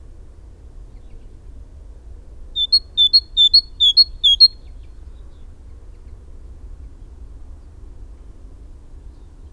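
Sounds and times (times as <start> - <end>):
great tit singing: 2.6 - 4.6.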